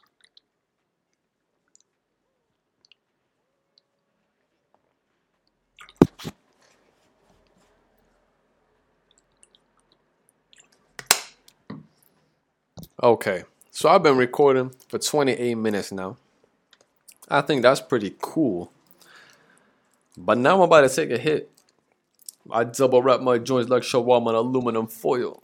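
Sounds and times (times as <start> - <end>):
person drinking water: 5.8 - 6.3
speech: 13.0 - 16.2, 17.3 - 18.8, 20.2 - 21.5, 22.4 - 25.4.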